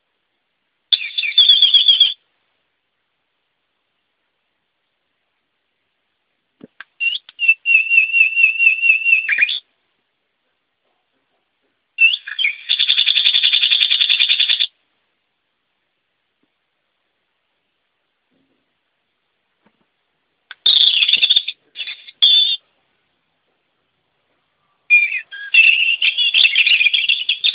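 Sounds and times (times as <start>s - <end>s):
English bird: 0.9s - 2.2s, 6.7s - 9.7s, 10.8s - 14.8s, 20.5s - 22.7s, 24.4s - 27.5s.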